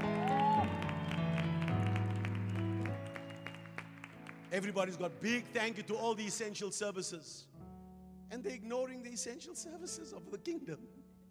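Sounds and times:
audience clapping: 0.0s - 5.3s
speech: 4.5s - 7.6s, 8.3s - 11.0s.

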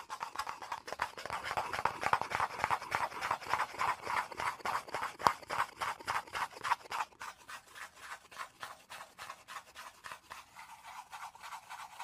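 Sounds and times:
rasping scratching and tapping strokes: 0.0s - 12.0s.

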